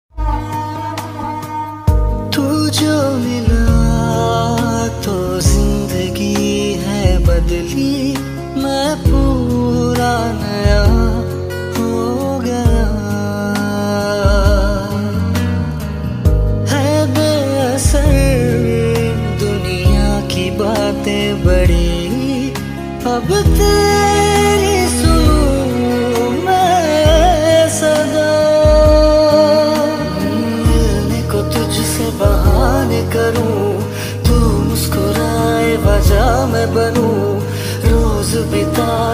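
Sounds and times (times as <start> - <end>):
sad song ringtone: 0.1 - 39.1.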